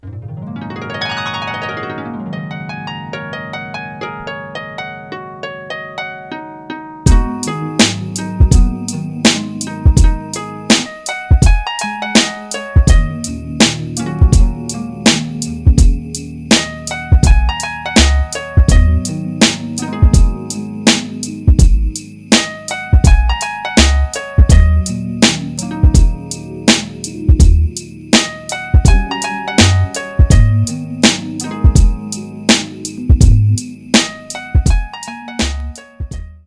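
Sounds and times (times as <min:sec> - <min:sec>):
instrumental music: 0:00.0 - 0:36.4.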